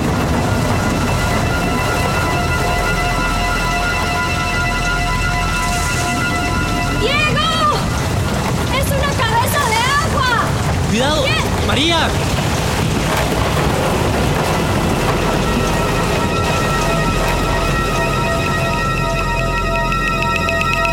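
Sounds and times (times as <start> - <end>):
sustained droning hum: 0.0 - 9.6, 12.7 - 20.9
rushing river flooding: 0.0 - 19.8
high wavering voices: 0.7 - 10.2, 14.8 - 20.9.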